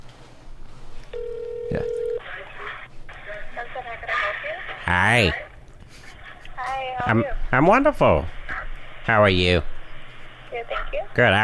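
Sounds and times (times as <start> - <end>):
electronic phone tone over a speakerphone: 1.1 - 2.2
speech: 4.9 - 5.4, 7.0 - 8.4, 9.0 - 9.7, 10.9 - 11.4.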